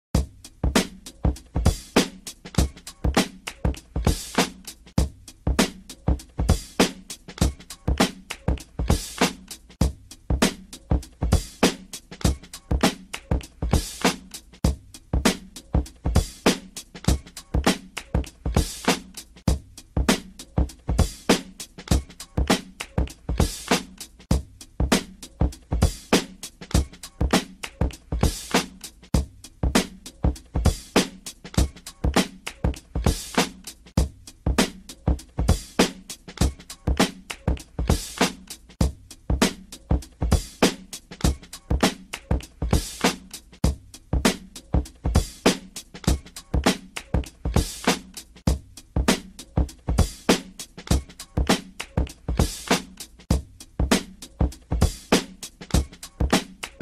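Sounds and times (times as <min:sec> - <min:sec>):
drum break loop: 0:00.2 - 0:56.7.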